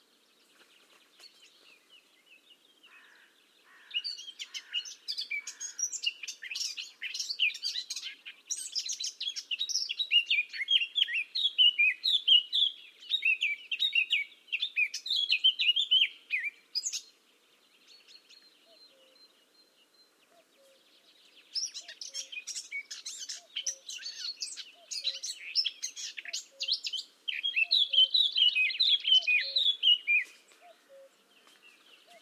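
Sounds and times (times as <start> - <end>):
Eurasian blackcap song: 0.0 - 32.2.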